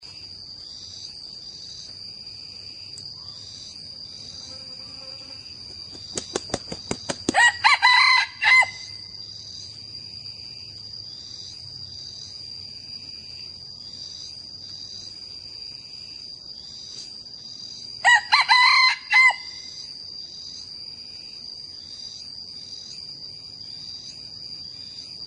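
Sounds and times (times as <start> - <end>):
young male red junglefowl crowing: 7.3 - 9.0, 18.0 - 19.7.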